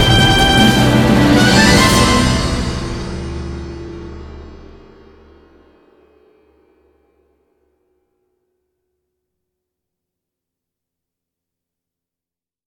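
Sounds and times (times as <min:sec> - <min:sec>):
instrumental music: 0:00.0 - 0:06.7.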